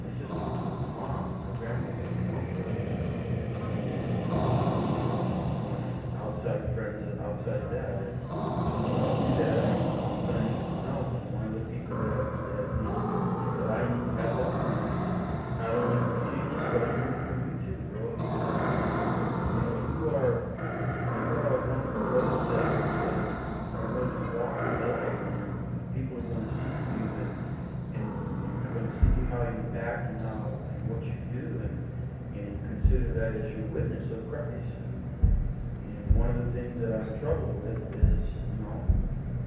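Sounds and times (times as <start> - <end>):
noise floor: 0.0 - 31.0, 31.6 - 39.4.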